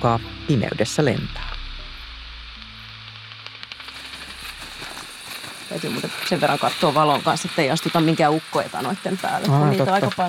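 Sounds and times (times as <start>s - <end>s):
speech: 0.0s - 1.6s, 5.7s - 10.2s
faint low electronic hum: 0.0s - 7.5s
bat detector steady hiss: 1.3s - 10.2s.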